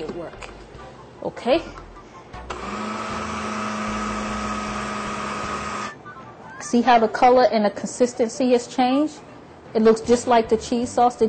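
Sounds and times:
speech: 1.2s - 1.9s, 6.7s - 11.2s
blender running: 2.5s - 6.0s.

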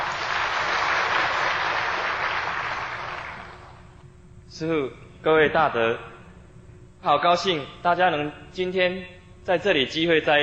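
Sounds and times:
audience applause: 0.0s - 3.8s
speech: 4.6s - 6.1s, 7.0s - 10.4s.

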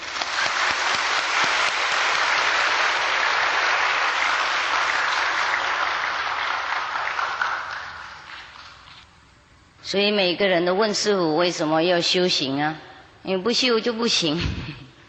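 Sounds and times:
audience applause: 0.0s - 8.9s
speech: 9.9s - 14.8s.

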